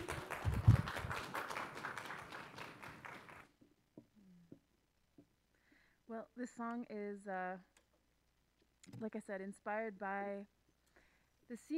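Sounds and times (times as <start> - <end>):
small audience applause: 0.0 - 3.5
speech: 6.4 - 7.7, 8.9 - 10.6, 11.5 - 11.7.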